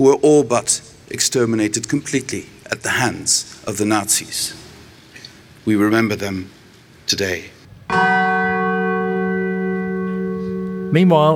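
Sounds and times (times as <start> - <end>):
speech: 0.0 - 4.7, 5.6 - 8.2, 10.9 - 11.3
bell of remembrance ringing at a ceremony in Warsaw: 7.9 - 11.3.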